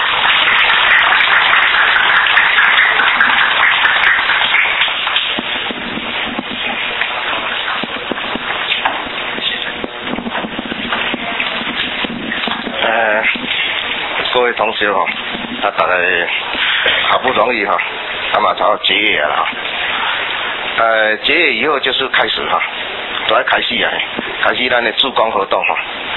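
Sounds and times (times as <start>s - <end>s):
applause: 0.0s - 19.6s
speech: 17.4s - 19.8s, 20.8s - 26.0s.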